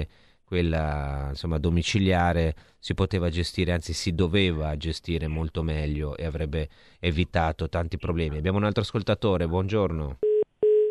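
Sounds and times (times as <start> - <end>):
speech: 0.0 - 10.3
dial tone after dropped phone line: 10.2 - 10.9.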